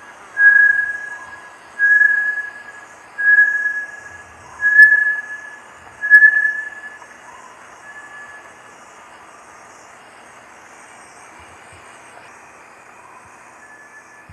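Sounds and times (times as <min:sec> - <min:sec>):
Bartlett's tinamou calling with long pure whistled notes: 0:00.3 - 0:08.5, 0:13.0 - 0:14.3.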